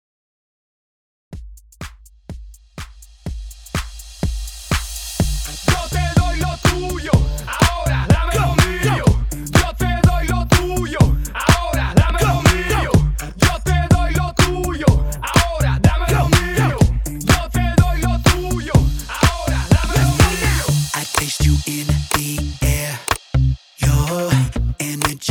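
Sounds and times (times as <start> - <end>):
hype electronic dance beat: 1.4 - 23.4, 24.0 - 25.2.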